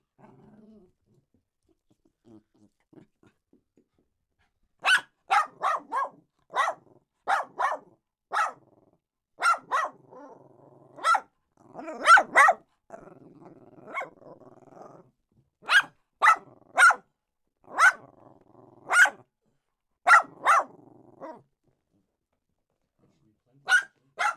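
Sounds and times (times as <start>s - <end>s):
small dog barking: 4.8s - 8.7s, 9.4s - 10.4s, 11.0s - 12.6s, 13.8s - 14.2s, 15.6s - 17.0s, 17.7s - 18.1s, 18.8s - 19.2s, 20.1s - 21.4s, 23.6s - 24.3s.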